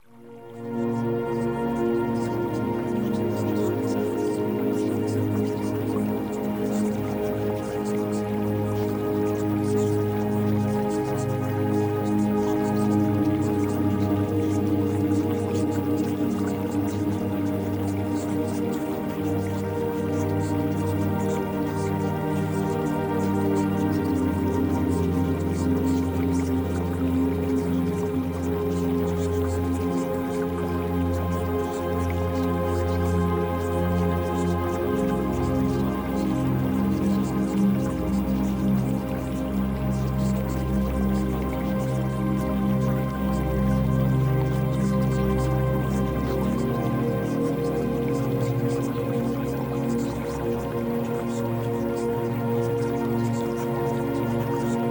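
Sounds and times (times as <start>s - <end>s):
music: 0.0s - 54.9s.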